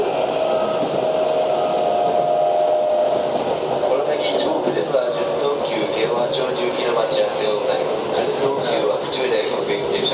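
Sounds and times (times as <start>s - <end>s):
Keio 5000 series train running: 0.0s - 10.1s
faint voices: 3.8s - 10.1s.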